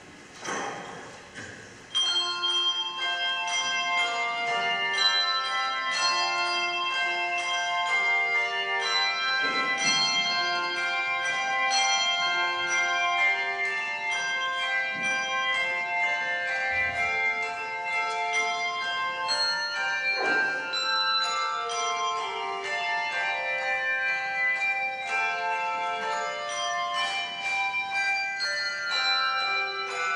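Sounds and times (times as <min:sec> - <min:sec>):
handbells: 0:00.0 - 0:30.1.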